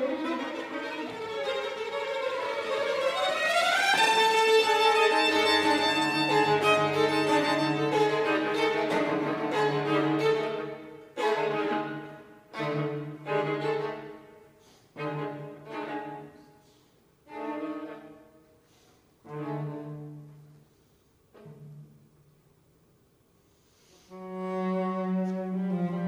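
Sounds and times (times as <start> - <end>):
string quartet playing a first movement: 0.0 - 16.6, 17.3 - 18.3, 19.2 - 20.5, 24.1 - 26.0.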